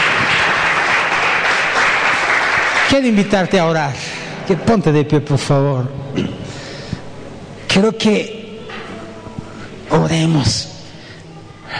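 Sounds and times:
audience applause: 0.0s - 3.9s
speech: 2.9s - 6.4s, 7.8s - 8.4s, 10.0s - 10.7s.

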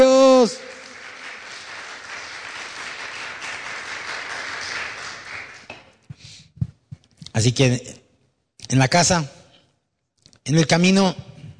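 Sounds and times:
audience applauding: 0.0s - 5.8s
speech: 7.4s - 8.0s, 8.7s - 9.4s, 10.4s - 11.3s.

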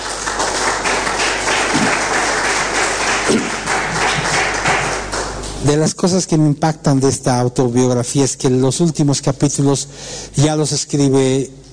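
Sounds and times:
audience applause: 0.0s - 5.5s
speech: 5.6s - 11.7s.

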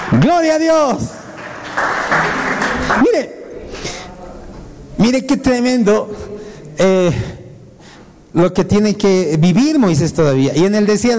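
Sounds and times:
audience applause for the Lord: 0.0s - 3.2s
speech: 0.1s - 1.2s, 1.8s - 3.4s, 5.0s - 7.3s, 8.4s - 11.1s.

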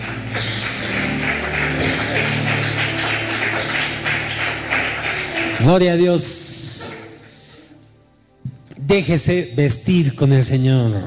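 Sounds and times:
crowd clapping: 0.0s - 7.2s
low sustained musical tones: 0.0s - 10.4s
speech: 5.6s - 6.6s, 8.9s - 11.0s.

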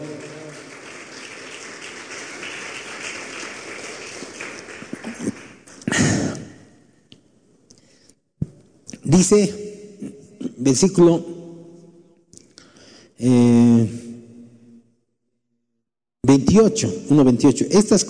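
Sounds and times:
audience applauding: 0.0s - 6.4s
speech: 9.1s - 9.6s, 10.6s - 11.3s, 16.6s - 18.0s.

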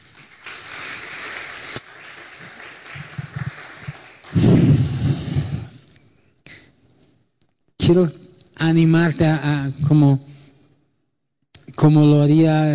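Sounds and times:
audience applause: 0.0s - 5.5s
speech: 7.9s - 10.3s, 11.8s - 12.7s.

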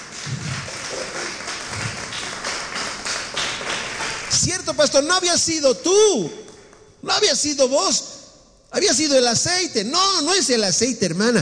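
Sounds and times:
audience applause: 0.0s - 4.4s
speech: 4.4s - 8.1s, 8.8s - 11.4s.

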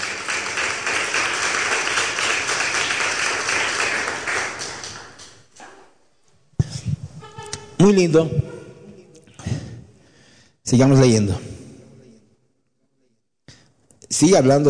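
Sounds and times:
crowd applauding: 0.0s - 5.5s
speech: 7.8s - 8.4s, 10.7s - 11.5s, 14.2s - 14.6s.

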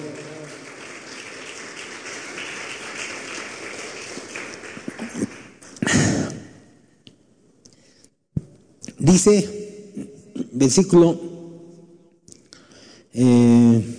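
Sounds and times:
audience applause: 0.0s - 6.2s
speech: 9.1s - 9.6s, 10.6s - 11.3s.

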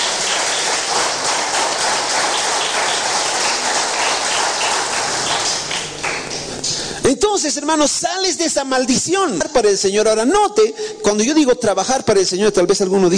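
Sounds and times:
audience applause: 0.0s - 6.8s
speech: 7.1s - 13.1s.

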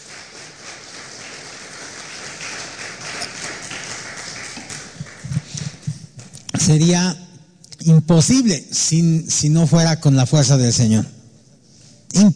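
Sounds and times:
audience applause: 0.0s - 5.9s
speech: 6.7s - 7.2s, 7.8s - 11.2s, 12.1s - 12.3s.

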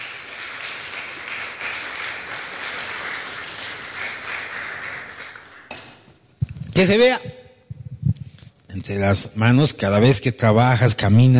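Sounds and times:
audience applauding: 0.0s - 5.9s
speech: 6.8s - 7.3s, 8.8s - 11.3s.

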